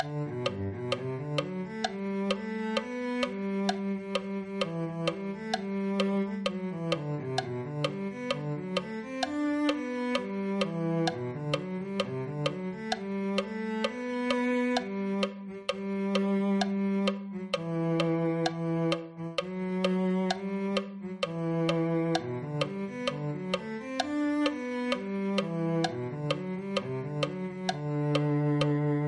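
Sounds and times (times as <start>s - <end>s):
cello: 0.0s - 29.0s.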